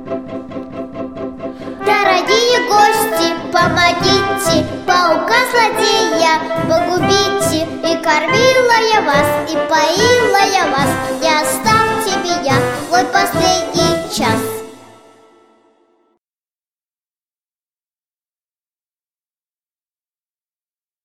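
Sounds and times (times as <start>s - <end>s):
song: 0.0s - 16.2s.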